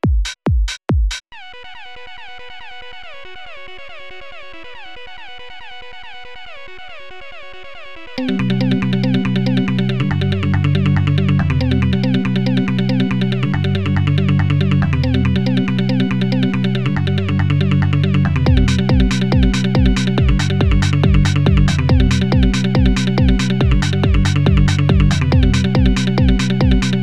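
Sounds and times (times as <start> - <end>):
bass tones: 8.2 - 27.0.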